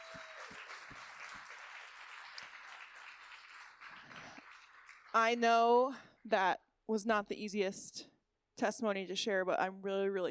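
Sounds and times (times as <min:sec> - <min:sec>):
round of applause: 0:00.0 - 0:05.2
speech: 0:05.2 - 0:10.3.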